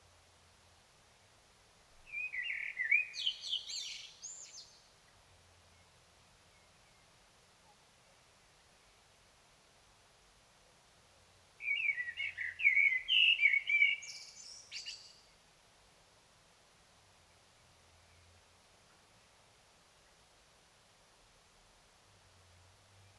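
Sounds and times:
common blackbird singing: 0:02.1 - 0:04.8, 0:11.6 - 0:15.2.

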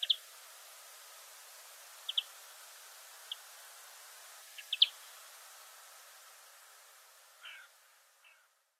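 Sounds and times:
European greenfinch Chloris chloris rattling trill calls: 0:00.0 - 0:00.8, 0:01.9 - 0:02.5, 0:03.1 - 0:03.6, 0:04.4 - 0:05.2, 0:07.4 - 0:08.5.

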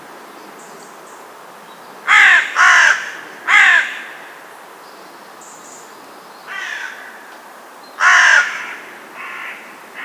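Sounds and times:
carrion crow cawing: 0:02.1 - 0:04.4, 0:06.5 - 0:07.4, 0:08.0 - 0:10.0.

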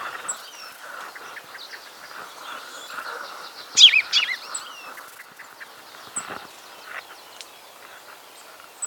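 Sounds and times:
Common chaffinch Fringilla coelebs song bursts: 0:00.1 - 0:06.9.

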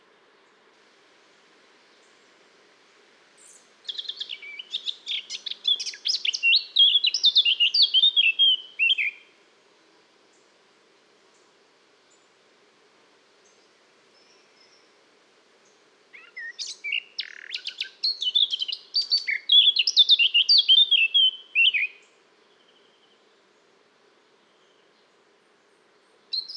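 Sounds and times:
background hiss: 0:00.0 - 0:26.5
Eurasian blackcap singing: 0:03.9 - 0:09.2, 0:16.2 - 0:21.9.

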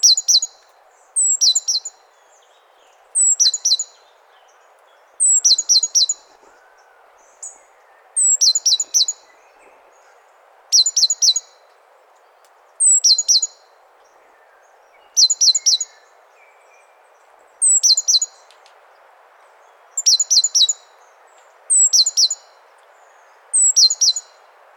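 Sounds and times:
great tit calling: 0:00.0 - 0:11.6, 0:12.8 - 0:13.7, 0:14.3 - 0:16.2, 0:17.6 - 0:18.5, 0:19.9 - 0:20.9, 0:21.7 - 0:24.4
faint hiss: 0:00.0 - 0:24.7.

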